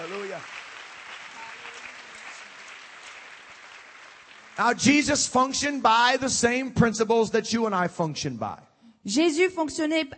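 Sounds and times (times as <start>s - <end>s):
crowd clapping in a large room: 0.0s - 5.9s
speech: 4.6s - 10.1s.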